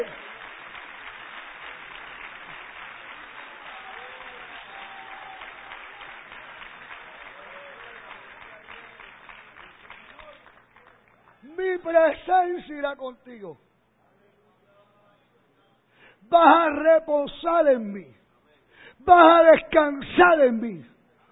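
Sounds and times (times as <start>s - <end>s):
speech: 0.0s - 0.2s, 11.8s - 13.7s, 16.3s - 18.2s, 19.0s - 20.9s
audience applauding: 0.0s - 11.5s.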